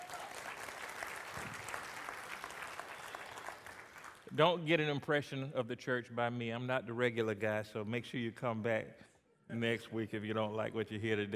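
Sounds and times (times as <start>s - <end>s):
audience applause: 0.0s - 4.3s
speech: 4.3s - 11.3s.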